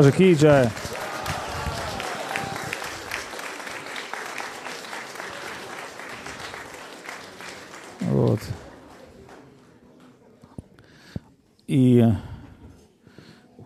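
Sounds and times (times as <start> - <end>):
speech: 0.0 - 0.8, 11.7 - 12.3
audience applause in farewell to Srila Govinda Maharaj: 0.0 - 9.6.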